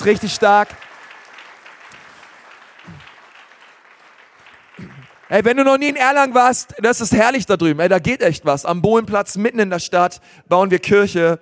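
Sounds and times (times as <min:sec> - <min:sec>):
speech: 0:00.0 - 0:00.8, 0:05.3 - 0:11.4
audience applause: 0:00.0 - 0:06.0.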